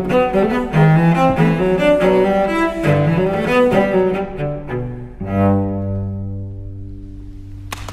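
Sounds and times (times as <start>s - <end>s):
solo cello gigue in G major: 0.0s - 7.7s.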